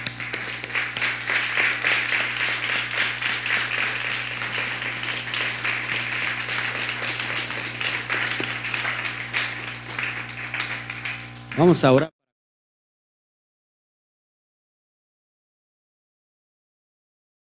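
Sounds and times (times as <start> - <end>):
audience applause: 0.0 - 12.0
speech: 11.6 - 12.1.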